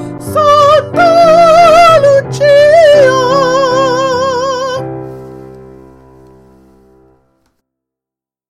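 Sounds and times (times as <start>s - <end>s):
person singing: 0.0s - 5.2s
piano: 0.0s - 7.6s.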